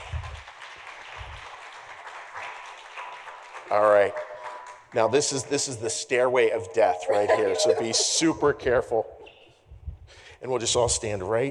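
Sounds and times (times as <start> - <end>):
audience applause: 0.0 - 5.6
speech: 3.7 - 4.2, 4.9 - 9.2, 10.4 - 11.5
laughter: 6.5 - 9.0.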